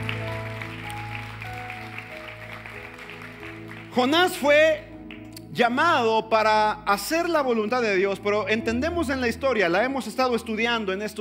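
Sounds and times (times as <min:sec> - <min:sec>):
audience applause: 0:00.0 - 0:05.3
speech: 0:04.0 - 0:04.9, 0:05.6 - 0:11.2.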